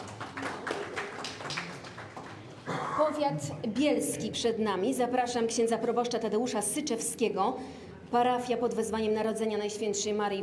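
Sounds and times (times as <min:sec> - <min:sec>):
faint scattered clapping at a grant-awarding ceremony: 0:00.0 - 0:02.6
speech: 0:03.0 - 0:10.4.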